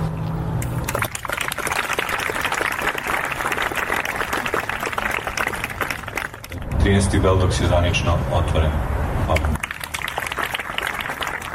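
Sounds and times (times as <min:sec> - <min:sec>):
applause opening a festival in Belgrade: 0:00.6 - 0:06.7, 0:09.4 - 0:11.5
speech: 0:06.9 - 0:09.6.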